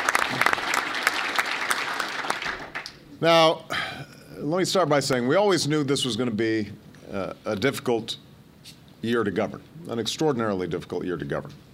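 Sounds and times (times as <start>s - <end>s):
applause: 0.0s - 3.0s
speech: 3.2s - 3.8s, 4.4s - 11.6s.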